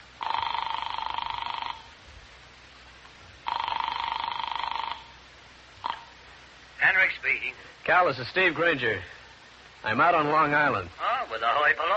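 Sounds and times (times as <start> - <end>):
telephone ringing after a New York number is dialed: 0.2 - 1.9, 3.5 - 5.1
speech: 7.4 - 9.2, 9.8 - 11.9.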